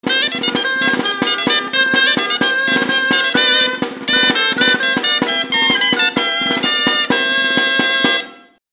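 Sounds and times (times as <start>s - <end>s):
gaiteroak bagpipe music: 0.0s - 8.6s.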